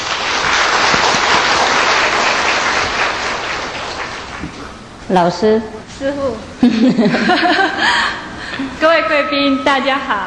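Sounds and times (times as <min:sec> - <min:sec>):
audience applause: 0:00.0 - 0:04.6
speech: 0:05.1 - 0:08.0, 0:08.6 - 0:10.2
laughter: 0:06.6 - 0:08.4.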